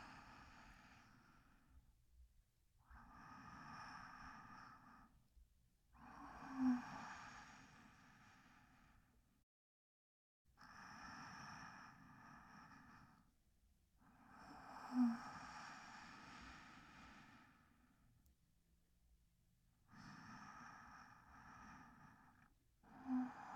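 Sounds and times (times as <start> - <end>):
sleep breathing recorded with binaural microphone: 0.0 - 1.7, 2.9 - 5.2, 6.0 - 9.2, 10.6 - 13.3, 14.0 - 18.0, 19.9 - 23.5.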